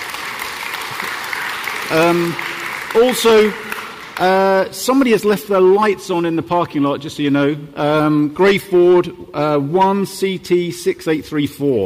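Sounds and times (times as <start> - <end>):
audience applause: 0.0 - 4.7
speech: 1.9 - 3.6, 4.2 - 11.8.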